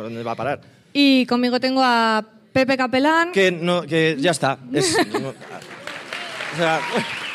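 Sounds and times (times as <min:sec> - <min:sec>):
speech: 0:00.0 - 0:05.7, 0:06.5 - 0:07.2
laughter: 0:04.8 - 0:07.3
applause: 0:05.3 - 0:07.3.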